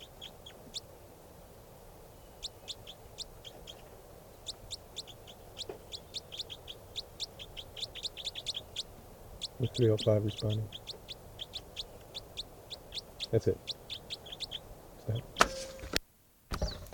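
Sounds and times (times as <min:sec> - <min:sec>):
bird calling: 0:00.0 - 0:01.2, 0:02.0 - 0:15.9
speech: 0:09.6 - 0:10.8, 0:13.3 - 0:13.7.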